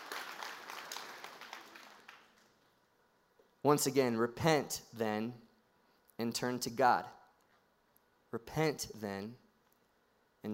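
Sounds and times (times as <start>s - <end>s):
audience applause: 0.0s - 2.4s
speech: 3.6s - 5.4s, 6.2s - 7.2s, 8.3s - 9.4s.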